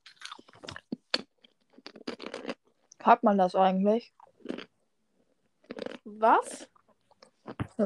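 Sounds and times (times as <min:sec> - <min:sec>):
chewing crisps: 0:00.0 - 0:02.8, 0:04.3 - 0:04.7, 0:05.6 - 0:07.6
speech: 0:03.1 - 0:04.2, 0:06.2 - 0:06.7.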